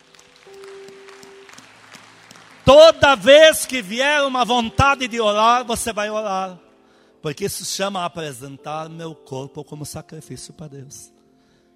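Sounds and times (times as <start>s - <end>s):
applause: 0.0s - 5.0s
speech: 2.7s - 6.6s, 7.2s - 11.2s.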